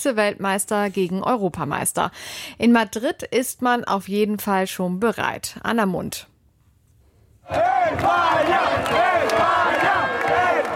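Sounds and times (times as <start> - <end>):
speech: 0.0 - 6.3, 7.5 - 10.1
football fans in Madrid chanting after Spain's win over Belgium: 7.4 - 10.7.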